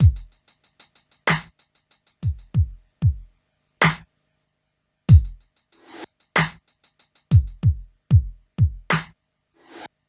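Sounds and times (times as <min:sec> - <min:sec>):
smooth R&B drums: 0:00.0 - 0:04.0, 0:05.1 - 0:09.1.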